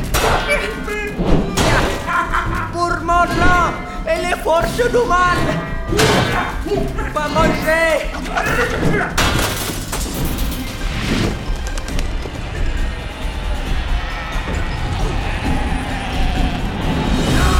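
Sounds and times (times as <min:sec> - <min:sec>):
constant rumbling din: 0:00.0 - 0:17.5
laughter: 0:00.3 - 0:09.2
door being smashed open: 0:01.2 - 0:02.3, 0:04.6 - 0:06.6, 0:08.4 - 0:11.0
speech: 0:04.1 - 0:09.5.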